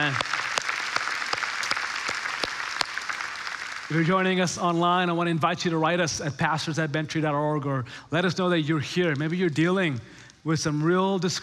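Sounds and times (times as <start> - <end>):
speech: 0.0 - 0.3, 3.9 - 11.4
audience clapping: 0.0 - 5.1.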